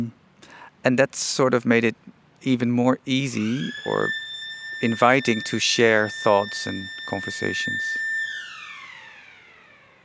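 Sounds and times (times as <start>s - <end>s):
speech: 0.8s - 4.2s, 4.8s - 8.0s
school bell ringing: 3.4s - 8.0s.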